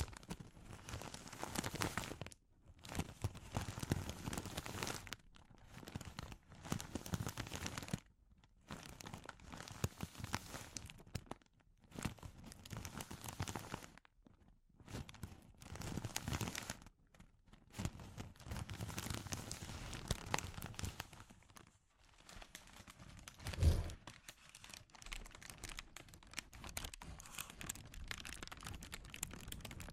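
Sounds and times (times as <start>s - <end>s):
crinkling plastic or paper being handled: 0.0s - 29.9s.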